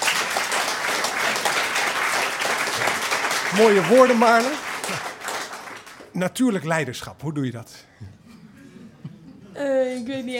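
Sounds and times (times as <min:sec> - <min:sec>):
audience applause: 0:00.0 - 0:06.5
speech: 0:03.5 - 0:05.1, 0:06.2 - 0:08.2, 0:09.6 - 0:10.3.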